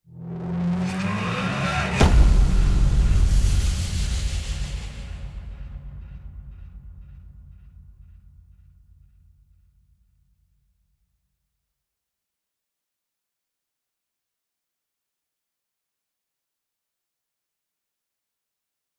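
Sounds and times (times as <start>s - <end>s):
hit: 0.9s - 6.8s.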